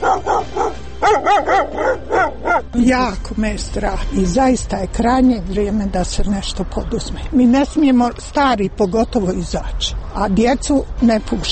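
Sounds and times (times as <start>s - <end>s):
stray dogs barking in Sarajevo: 0.0s - 2.8s
speech: 2.8s - 11.5s.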